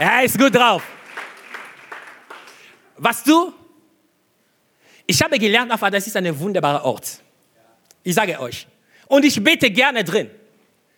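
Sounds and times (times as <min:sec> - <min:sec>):
speech: 0:00.0 - 0:00.9, 0:03.0 - 0:03.6, 0:05.1 - 0:07.2, 0:08.0 - 0:10.4
audience applause: 0:00.3 - 0:02.9.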